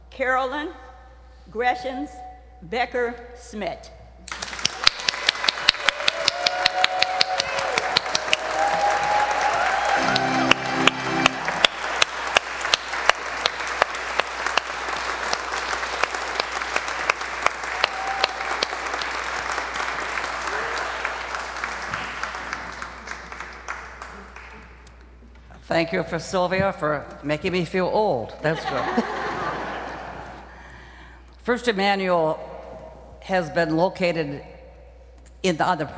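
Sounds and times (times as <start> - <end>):
speech: 0.2 - 0.9, 1.5 - 4.0, 25.8 - 29.1, 31.4 - 32.5, 33.3 - 34.5, 35.4 - 35.9
audience applause welcoming a speaker at First Emmanuel: 4.3 - 24.8
laughter: 28.5 - 30.5.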